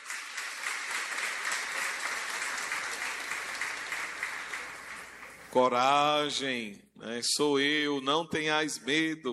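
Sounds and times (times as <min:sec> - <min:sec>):
audience applause: 0:00.0 - 0:05.7
speech: 0:05.5 - 0:09.3.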